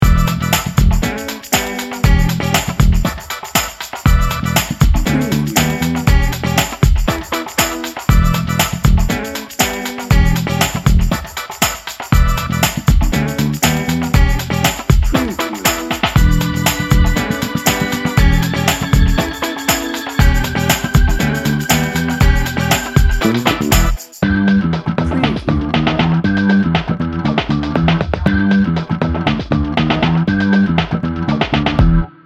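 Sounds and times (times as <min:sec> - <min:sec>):
funky lick: 0:00.0 - 0:32.1.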